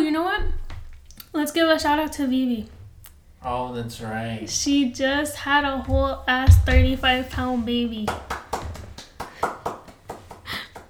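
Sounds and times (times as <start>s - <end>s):
speech: 1.4s - 2.8s, 3.4s - 8.4s
hand clapping: 6.0s - 10.8s.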